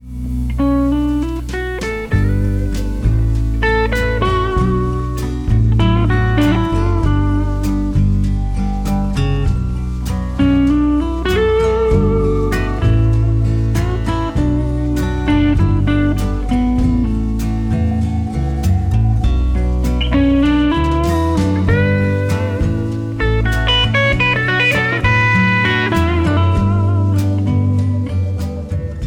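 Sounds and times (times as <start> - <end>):
Gibson 59 guitars: 0.0 - 29.0.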